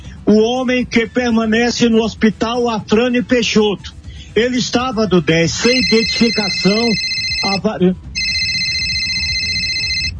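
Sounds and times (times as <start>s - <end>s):
speech: 0.3s - 8.1s
electronic telephone ringtone for an incoming call: 5.6s - 10.1s.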